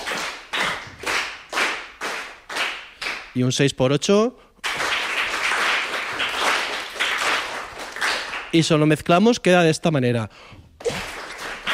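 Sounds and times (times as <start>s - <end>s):
hand claps in a steady 3/4 rhythm: 0.0s - 3.4s, 4.6s - 8.6s, 10.8s - 11.7s
speech: 3.4s - 4.5s, 8.5s - 10.6s.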